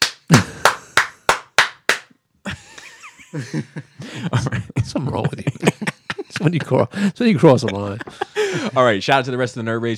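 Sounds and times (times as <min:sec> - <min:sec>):
one person clapping: 0:00.0 - 0:02.1
speech: 0:00.3 - 0:00.6, 0:03.3 - 0:09.9
laughter: 0:02.5 - 0:09.0.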